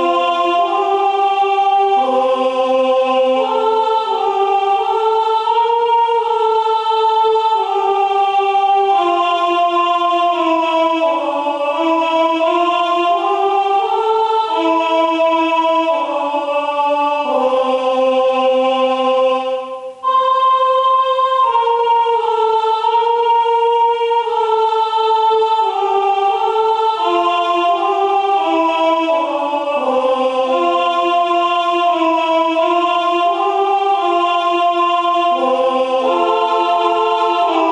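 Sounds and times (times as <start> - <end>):
soprano singing Christmas carols: 0.0 - 37.7.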